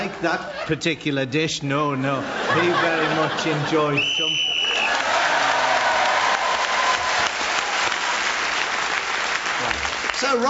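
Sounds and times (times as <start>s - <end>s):
laughter: 0.0s - 0.9s, 2.1s - 5.8s
speech: 0.0s - 4.5s
audience applause after a contestant's turn in a game: 4.5s - 10.4s.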